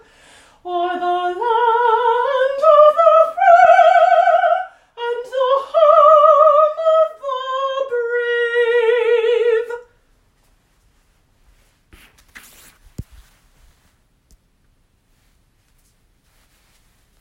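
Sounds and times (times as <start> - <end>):
vocals: 0.0 - 10.0.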